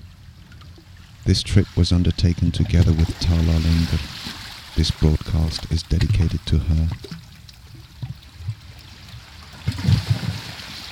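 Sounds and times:
speech: 1.3 - 7.2
sea water sloshing and gurgling among rocks on Phu Quoc Island: 2.6 - 10.9.

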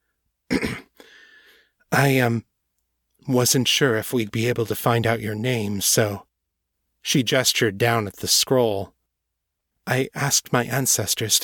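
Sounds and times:
woman clearing throat, voiced by a narrator: 0.5 - 1.0
speech: 2.0 - 2.5, 3.2 - 6.3, 7.0 - 9.0, 9.8 - 11.4.

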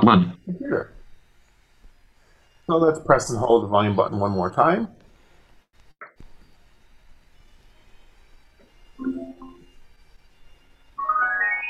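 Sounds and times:
speech: 0.0 - 1.0, 2.7 - 5.0
bluetooth device connection chime: 9.0 - 9.8.

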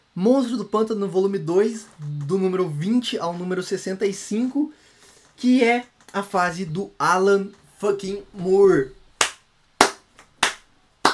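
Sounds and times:
speech: 0.2 - 4.8, 5.4 - 9.0
slow sharp hand claps: 9.2 - 11.1.

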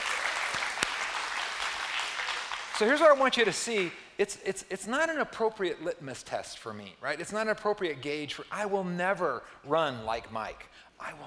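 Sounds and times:
crowd clapping: 0.0 - 4.0
speech: 2.8 - 11.2.

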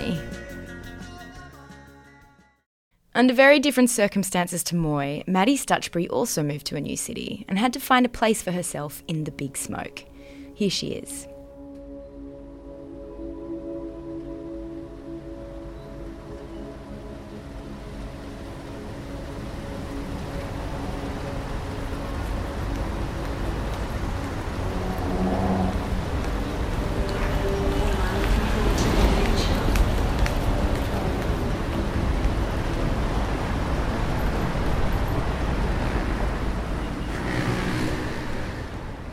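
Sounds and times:
speech: 3.2 - 11.3
city traffic hum: 9.7 - 39.1.

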